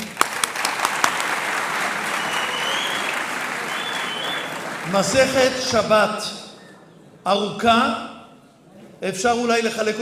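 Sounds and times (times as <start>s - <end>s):
audience applauding: 0.0s - 5.6s
speech: 4.9s - 6.4s, 7.2s - 8.1s, 9.0s - 10.0s.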